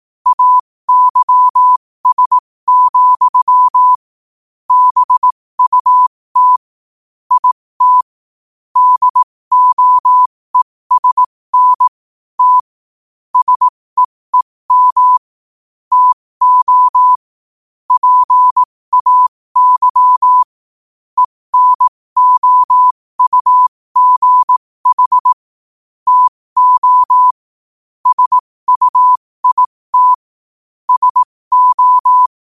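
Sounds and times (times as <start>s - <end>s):
morse code at 5 wpm: 0.3s - 4.0s, 4.7s - 6.6s, 7.3s - 8.1s, 8.8s - 12.7s, 13.4s - 15.3s, 15.9s - 17.2s, 17.9s - 20.5s, 21.2s - 25.4s, 26.1s - 27.4s, 28.0s - 30.3s, 30.9s - 32.3s.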